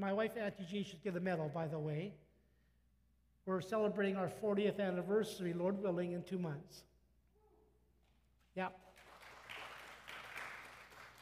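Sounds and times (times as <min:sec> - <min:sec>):
speech: 0:00.0 - 0:02.2, 0:03.4 - 0:06.9, 0:08.6 - 0:09.0
audience applause: 0:08.9 - 0:11.1.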